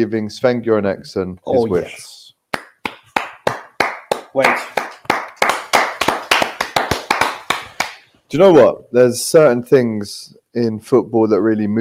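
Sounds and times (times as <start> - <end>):
speech: 0.0 - 2.2, 4.4 - 4.7, 8.3 - 11.7
sharp crisp hand claps: 2.5 - 8.1.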